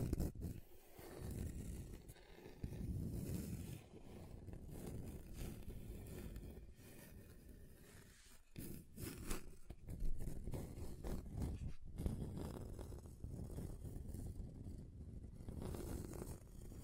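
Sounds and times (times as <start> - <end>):
table scratching across different surfaces: 0.0 - 14.2, 15.4 - 16.8.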